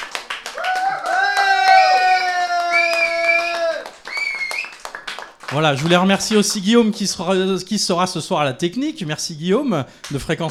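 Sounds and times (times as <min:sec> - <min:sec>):
loud sustained cheering voices: 0:00.0 - 0:06.6
audience applause: 0:00.0 - 0:07.2
speech: 0:05.5 - 0:10.5.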